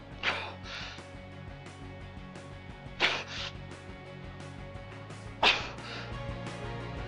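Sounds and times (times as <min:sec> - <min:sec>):
steady low drone: 0:00.0 - 0:07.0
strained breathing of someone under high G-force: 0:00.2 - 0:01.2, 0:03.0 - 0:03.8, 0:05.2 - 0:06.2.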